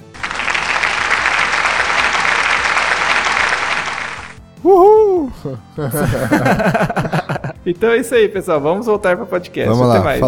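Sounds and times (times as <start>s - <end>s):
applause sound effect: 0.0s - 4.4s
laughter: 5.3s - 7.6s
speech: 5.4s - 10.2s.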